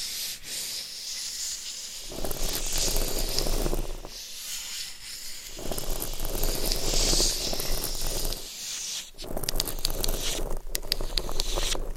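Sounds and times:
scratching against a microphone: 2.0 - 4.2, 5.3 - 11.9.

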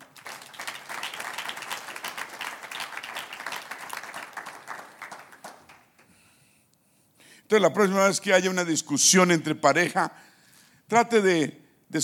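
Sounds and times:
audience applause: 0.0 - 6.0
speech: 7.5 - 10.3, 10.9 - 12.0.

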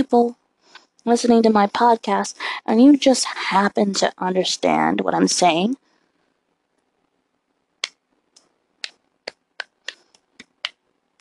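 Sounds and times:
speech: 0.0 - 0.4, 1.0 - 5.8
hand claps: 8.8 - 10.8.

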